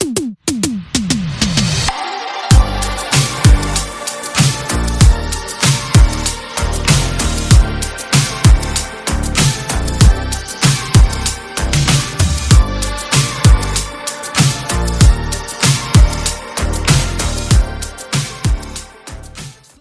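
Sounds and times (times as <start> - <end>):
instrumental music: 0.0 - 19.8.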